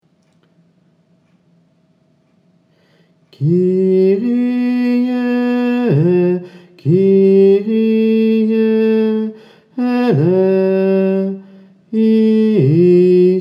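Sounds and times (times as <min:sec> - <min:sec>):
tenor voice singing: 0:03.4 - 0:13.3.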